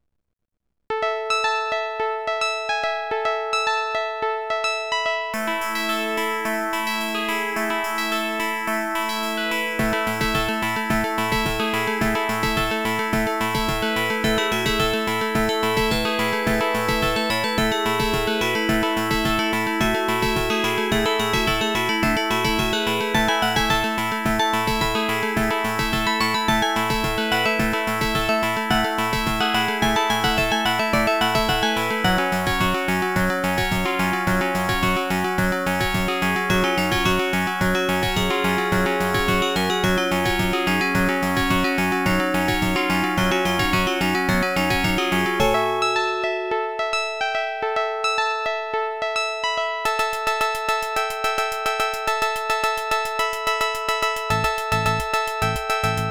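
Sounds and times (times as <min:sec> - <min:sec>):
AdLib OPL2 FM synth music: 0:00.9 - 0:56.0.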